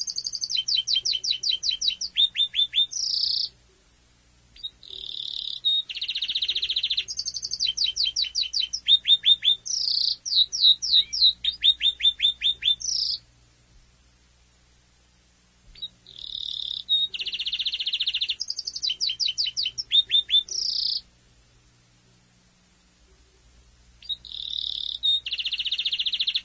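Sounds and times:
domestic canary singing: 0.0 - 3.6, 4.5 - 13.3, 15.7 - 21.1, 24.0 - 26.4.

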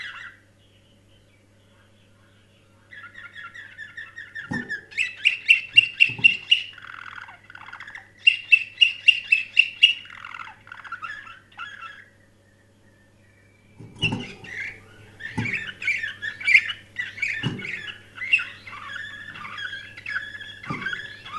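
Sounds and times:
canary singing: 0.0 - 21.3
faint low hum: 0.0 - 21.3
dull thumps: 15.2 - 15.8, 17.4 - 17.9, 20.6 - 21.3.

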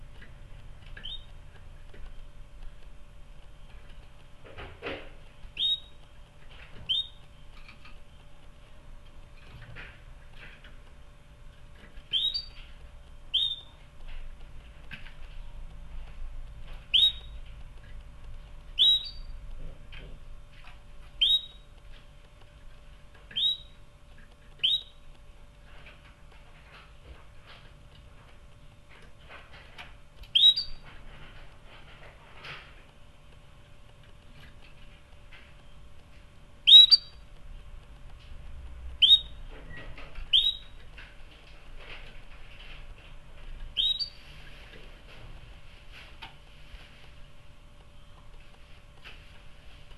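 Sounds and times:
low background hum: 0.0 - 49.9
canary whistled chirps: 1.0 - 1.3, 5.6 - 6.0, 6.9 - 7.2, 12.1 - 12.6, 13.3 - 13.7, 16.9 - 17.4, 18.8 - 19.3, 21.2 - 21.6, 23.3 - 23.8, 24.6 - 25.0, 30.3 - 30.8, 36.6 - 37.2, 39.0 - 39.4, 40.3 - 40.8, 43.8 - 44.2.

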